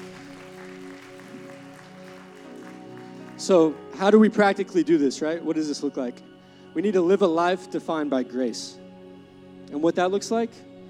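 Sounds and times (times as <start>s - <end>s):
audience clapping: 0.0s - 4.6s
speech: 3.4s - 8.8s, 9.7s - 10.7s.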